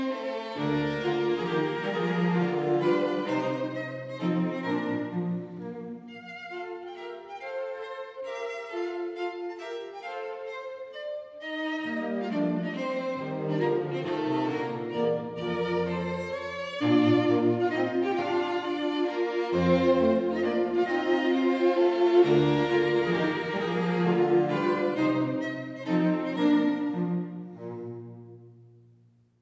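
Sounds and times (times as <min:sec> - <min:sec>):
string quartet playing a classical piece: 0:00.0 - 0:28.8.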